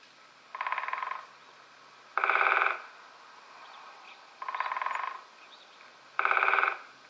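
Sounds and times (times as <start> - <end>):
woodpecker drumming on a tree: 0.5 - 1.4, 2.2 - 2.9, 4.4 - 6.9.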